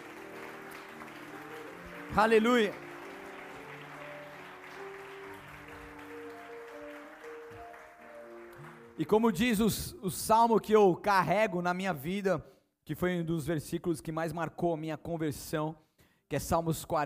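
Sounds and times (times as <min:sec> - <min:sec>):
audience applause: 0:00.0 - 0:09.4
speech: 0:02.1 - 0:02.8, 0:09.0 - 0:17.0.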